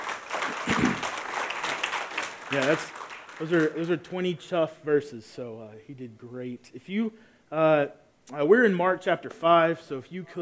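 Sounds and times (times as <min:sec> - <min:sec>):
audience applause: 0:00.0 - 0:03.8
speech: 0:02.5 - 0:10.3.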